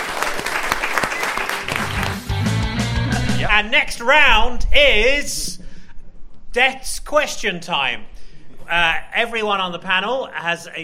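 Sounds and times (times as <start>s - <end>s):
audience applause: 0.0s - 2.6s
speech: 3.6s - 5.6s, 6.6s - 8.1s, 8.7s - 10.8s.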